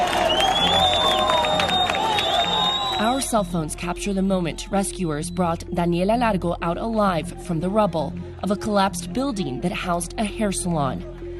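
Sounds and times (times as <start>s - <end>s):
crowd applause and cheering at a rescue site in Pereira: 0.0s - 3.6s
speech: 3.2s - 11.1s.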